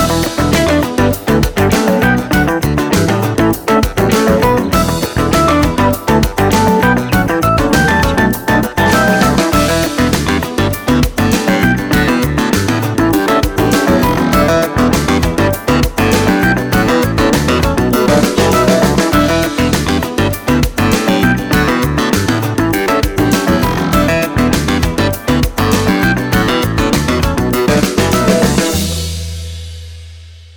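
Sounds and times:
happy funk music: 0.0s - 29.9s.

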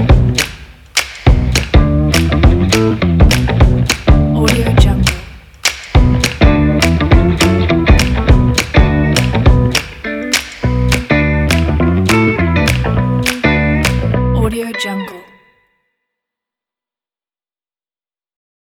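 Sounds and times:
funk music: 0.0s - 0.4s, 1.3s - 5.2s, 6.0s - 15.4s.

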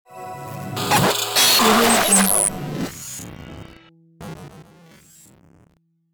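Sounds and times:
elegant glitch intro reveal: 0.2s - 5.6s.

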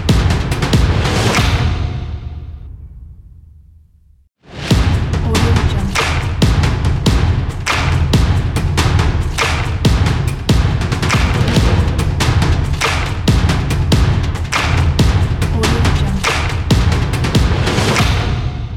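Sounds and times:
aggressive sport drums logo: 0.0s - 2.3s, 4.5s - 18.7s.

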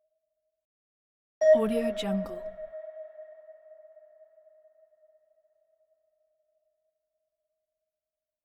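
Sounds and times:
sonar ping: 1.4s - 5.4s.

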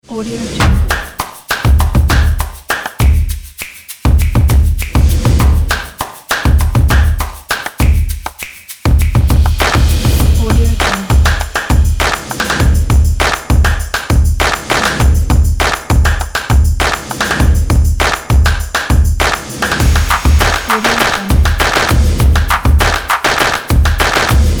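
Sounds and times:
percussion: 0.1s - 24.5s.

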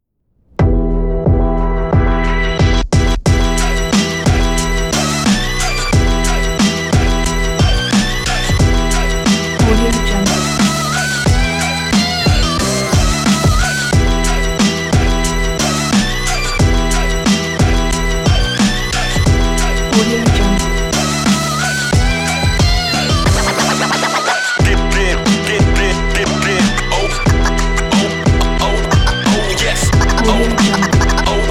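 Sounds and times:
urban hip hop: 0.6s - 31.5s.

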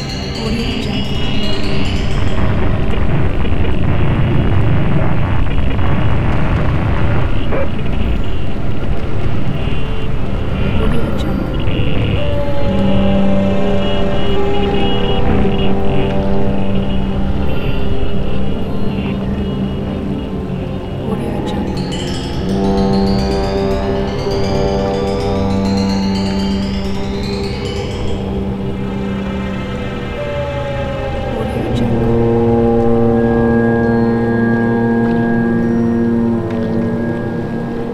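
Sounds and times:
horror suspense soundscape: 0.0s - 37.9s.

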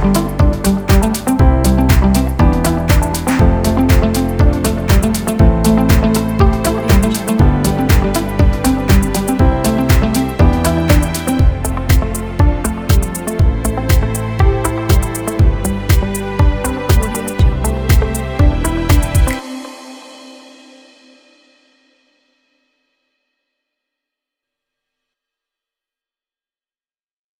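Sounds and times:
uplifting upbeat inspiring corporate presentation music: 0.0s - 19.4s.

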